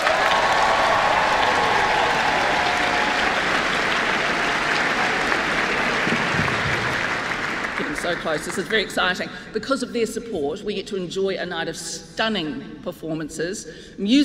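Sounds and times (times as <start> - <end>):
audience applause: 0.0 - 9.0
speech: 8.1 - 14.2.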